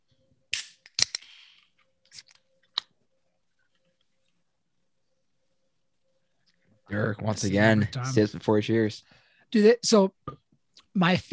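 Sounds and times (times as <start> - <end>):
soda cans cracked open: 0.5 - 1.5
speech: 6.9 - 10.4, 11.0 - 11.3.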